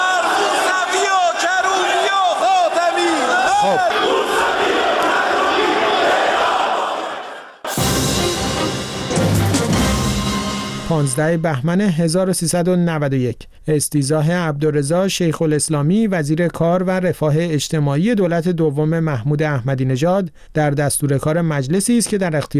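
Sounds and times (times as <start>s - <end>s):
lawmakers shouting slogans in unison in parliament: 0.0s - 7.6s
crowd roar: 0.0s - 10.8s
speech: 10.9s - 22.5s.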